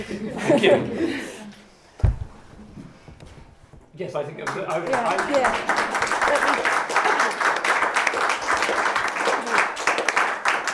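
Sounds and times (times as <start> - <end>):
speech: 0.0 - 1.4, 4.0 - 6.5
laughter: 0.0 - 1.6, 6.0 - 7.6
audience applause: 4.4 - 10.7.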